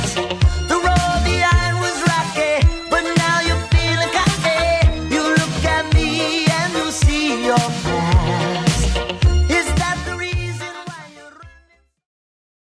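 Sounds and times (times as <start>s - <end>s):
1980s style music track: 0.0s - 12.0s.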